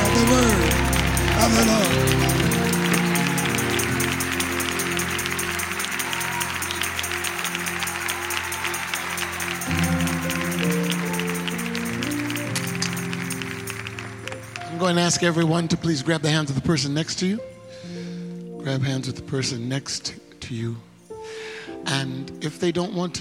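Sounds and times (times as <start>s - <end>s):
audience clapping and praising: 0.0s - 15.3s
speech: 15.0s - 17.5s, 18.7s - 20.9s, 21.8s - 23.1s.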